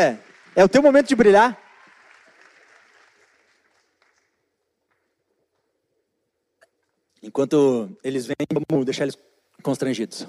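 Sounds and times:
speech: 0:00.0 - 0:01.6, 0:07.2 - 0:10.2
audience applause: 0:00.0 - 0:04.4.

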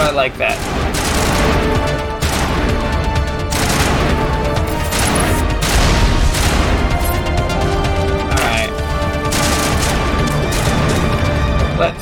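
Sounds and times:
sustained tonal backdrop: 0:00.0 - 0:12.0
rocket explosions and weapon fire in a shooter video game: 0:00.5 - 0:07.2, 0:09.2 - 0:11.2.

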